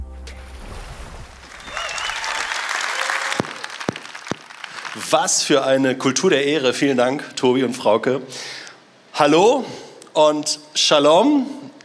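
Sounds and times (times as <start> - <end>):
audience applause: 1.4 - 5.4
speech: 5.0 - 8.6, 9.2 - 11.7.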